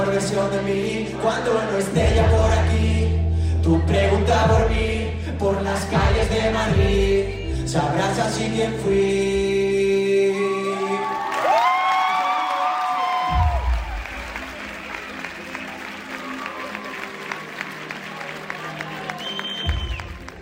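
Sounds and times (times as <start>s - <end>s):
speech: 0.0s - 9.7s
concert crowd applauding and cheering: 10.1s - 20.4s
high whoops and shouted voices: 10.4s - 17.5s.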